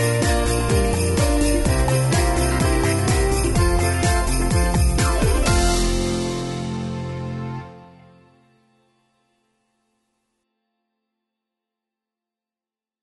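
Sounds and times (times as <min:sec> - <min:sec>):
bells: 0:00.0 - 0:07.0
rhythm track: 0:00.0 - 0:07.7.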